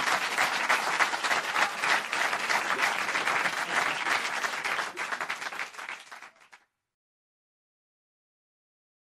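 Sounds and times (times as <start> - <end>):
audience applause: 0.0 - 6.6.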